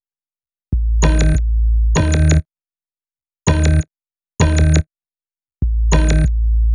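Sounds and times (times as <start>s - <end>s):
hip-hop bass: 0.7s - 2.4s, 5.7s - 6.7s.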